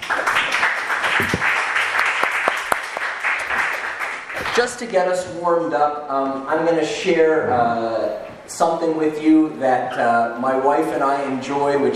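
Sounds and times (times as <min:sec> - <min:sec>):
audience applause: 0:00.0 - 0:04.8
speech: 0:04.6 - 0:11.9.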